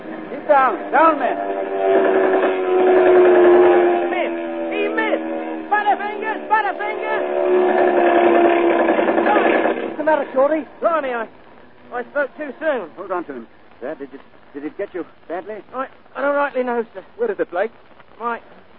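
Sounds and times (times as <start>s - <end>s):
dive-bomber planes roaring in: 0.0s - 13.8s
speech: 0.5s - 2.2s, 9.4s - 18.6s.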